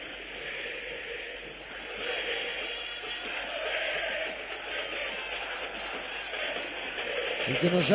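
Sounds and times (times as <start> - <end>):
football fans chanting in stadium: 0.0 - 7.9.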